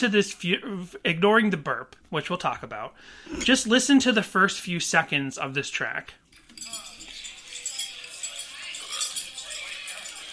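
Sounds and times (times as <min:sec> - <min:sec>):
speech: 0:00.0 - 0:06.8
clinking cutlery and dishes in a restaurant: 0:06.3 - 0:10.3
indistinct chatter: 0:06.4 - 0:10.3.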